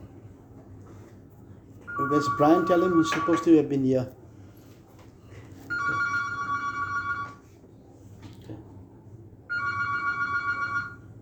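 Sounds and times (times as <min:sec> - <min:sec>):
low hum: 0:00.0 - 0:11.2
mobile phone ringing during a prayer meeting: 0:01.9 - 0:03.6, 0:05.7 - 0:07.5, 0:09.5 - 0:11.1
speech: 0:02.0 - 0:04.2.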